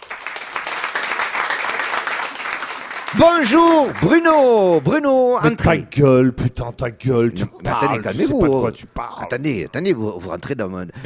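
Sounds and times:
audience applause: 0.0s - 5.4s
speech: 3.1s - 11.0s.

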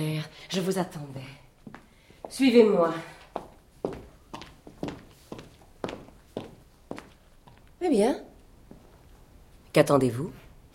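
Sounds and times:
speech: 0.0s - 3.2s, 7.8s - 8.3s, 9.8s - 10.4s
footsteps of one person walking at dawn in the Hôtel Saint-Paul in Paris: 1.6s - 2.4s, 3.2s - 7.8s, 8.5s - 9.6s.

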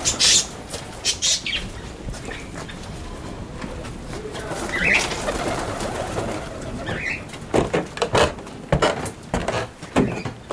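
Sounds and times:
parakeets chirping: 0.0s - 2.9s, 4.3s - 7.3s
steady murmur of noise: 0.0s - 10.4s.

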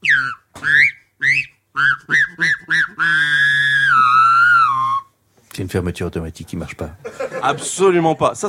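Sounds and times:
voice imitating goose honks: 0.0s - 4.7s
speech: 5.6s - 8.4s
laughter: 7.0s - 8.1s.

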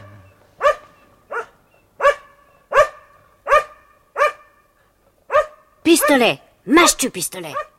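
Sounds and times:
dog barking: 0.0s - 4.6s, 5.3s - 6.3s, 7.5s - 7.7s
speech: 5.8s - 7.7s.

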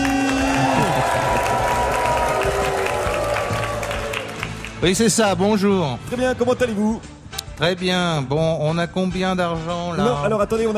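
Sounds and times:
studio audience clapping and cheering at a telethon-style show: 0.0s - 5.2s
speech: 4.8s - 10.7s.

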